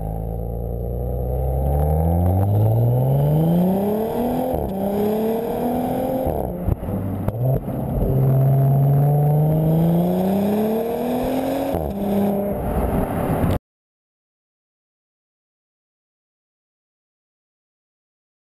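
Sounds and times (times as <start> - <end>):
Audi RS 5 Coupe: 0.0 - 13.6.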